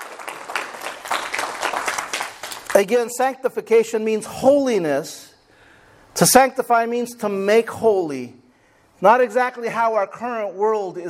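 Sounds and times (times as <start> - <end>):
audience hand clapping: 0.0 - 2.9
speech: 2.8 - 5.3, 6.2 - 8.4, 9.0 - 11.0.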